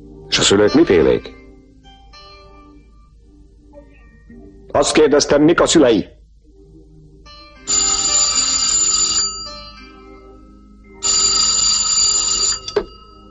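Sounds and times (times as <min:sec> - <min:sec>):
speech: 0:00.0 - 0:01.4, 0:04.8 - 0:06.2
telephone ringing, bright high electronic ring: 0:07.6 - 0:10.0, 0:10.9 - 0:13.2.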